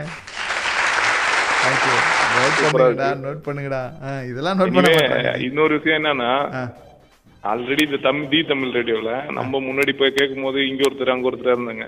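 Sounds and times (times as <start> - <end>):
applause sound effect: 0.0 - 2.8
speech: 1.6 - 6.8, 7.4 - 11.8.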